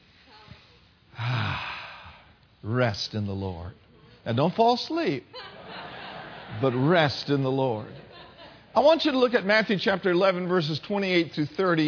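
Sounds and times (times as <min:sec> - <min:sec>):
congregation breathing deeply during a church service: 0:00.0 - 0:02.4
speech: 0:02.6 - 0:05.6, 0:06.5 - 0:08.1, 0:08.8 - 0:11.8
laughter: 0:05.3 - 0:09.2.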